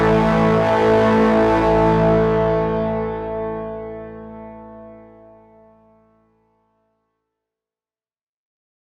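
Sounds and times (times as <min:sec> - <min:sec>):
synth: 0:00.0 - 0:06.2.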